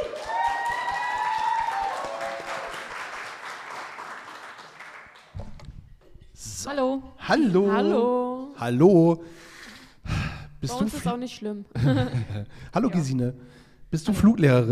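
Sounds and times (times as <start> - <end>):
audience applause: 0.0 - 5.4
speech: 6.7 - 9.4, 10.6 - 14.7
laughter: 11.8 - 12.6.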